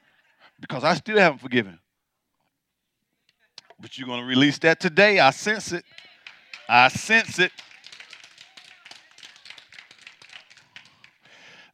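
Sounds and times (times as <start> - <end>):
speech: 0.6 - 1.8, 3.8 - 6.1, 6.7 - 7.7
light audience clapping: 5.8 - 11.4.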